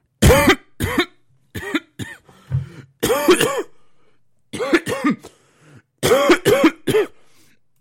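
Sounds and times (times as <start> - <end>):
person coughing: 0.2 - 3.8, 4.6 - 5.4, 6.0 - 7.2.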